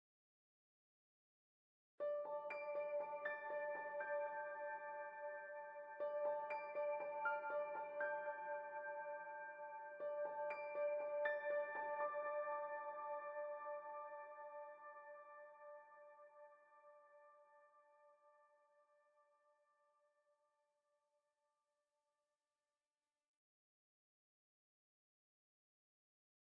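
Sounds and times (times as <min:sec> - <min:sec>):
piano: 0:02.0 - 0:18.2.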